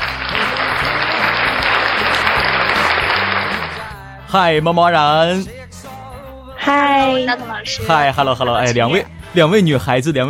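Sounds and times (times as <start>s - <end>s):
applause: 0.0s - 4.0s
speech: 4.3s - 5.6s, 6.6s - 10.2s.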